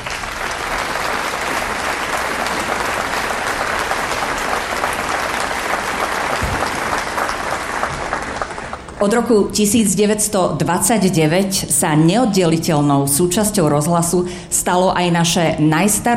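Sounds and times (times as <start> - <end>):
audience applause: 0.0 - 9.0
speech: 9.0 - 16.1.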